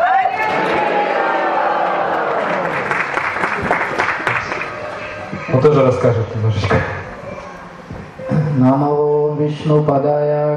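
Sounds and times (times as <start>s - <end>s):
crowd noise: 0.0s - 10.5s
festival audience applause welcoming the next speaker: 0.4s - 5.4s
speech: 5.5s - 7.0s, 8.6s - 10.5s.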